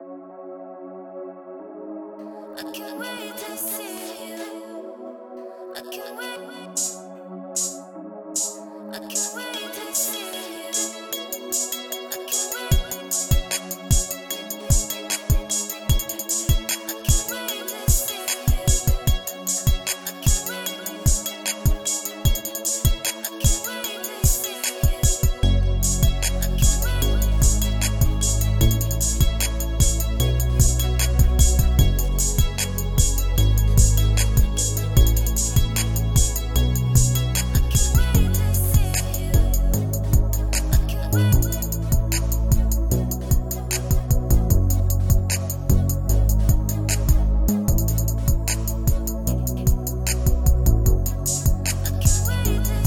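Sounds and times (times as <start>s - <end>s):
instrumental music: 9.2s - 52.8s.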